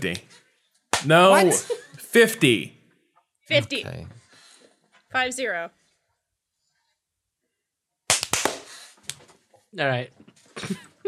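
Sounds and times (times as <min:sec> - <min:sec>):
speech: 0:00.0 - 0:00.4, 0:01.0 - 0:02.8, 0:03.5 - 0:04.2, 0:05.1 - 0:05.8, 0:09.7 - 0:10.8
single hand clap: 0:00.9 - 0:01.4, 0:08.1 - 0:09.2
laughter: 0:01.1 - 0:02.6, 0:03.5 - 0:04.1, 0:10.6 - 0:11.0.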